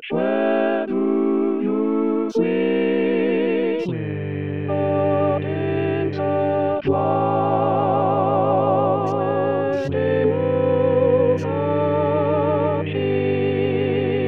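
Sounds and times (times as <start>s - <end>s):
barbershop quartet singing all parts: 0.1s - 14.2s.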